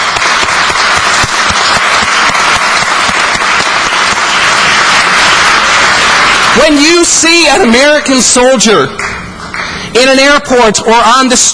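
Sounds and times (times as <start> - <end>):
audience applause: 0.0 - 8.0, 9.0 - 9.9
speech: 6.6 - 9.2, 10.0 - 11.5.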